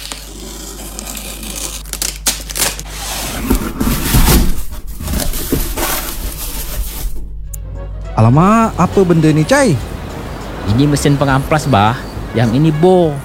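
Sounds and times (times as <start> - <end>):
parcel packaging tearing: 0.0 - 7.3
speech: 8.2 - 9.9, 10.6 - 13.2.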